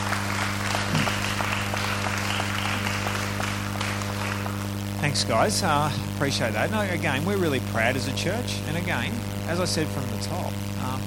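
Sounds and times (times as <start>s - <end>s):
round of applause: 0.0s - 5.0s
speech: 5.0s - 11.0s.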